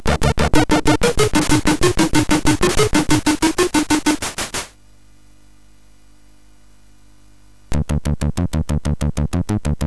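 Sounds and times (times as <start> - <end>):
techno on a SID MOS6581R4 sound chip: 0.0 - 4.7, 7.8 - 9.8.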